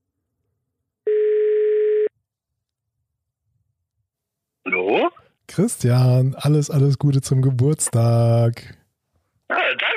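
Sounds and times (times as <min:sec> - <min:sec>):
telephone ringback tone: 0:01.1 - 0:02.1
speech: 0:04.9 - 0:08.8, 0:09.5 - 0:09.9.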